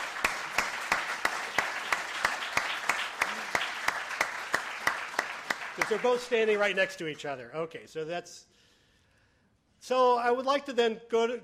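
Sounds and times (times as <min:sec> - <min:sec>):
sharp evenly paced clap: 0:00.0 - 0:06.6
round of applause: 0:00.0 - 0:06.8
speech: 0:05.9 - 0:08.5, 0:09.8 - 0:11.4.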